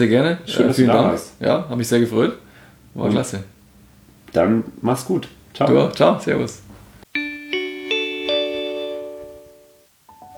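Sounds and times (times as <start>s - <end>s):
speech: 0.0s - 3.5s, 4.3s - 6.6s
gong chime marking end of episode: 7.2s - 9.8s.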